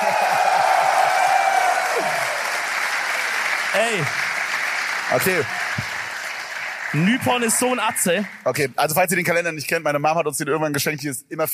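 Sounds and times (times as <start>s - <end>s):
crowd applause: 0.0s - 8.8s
speech: 3.8s - 4.2s, 5.1s - 5.6s, 6.9s - 11.5s.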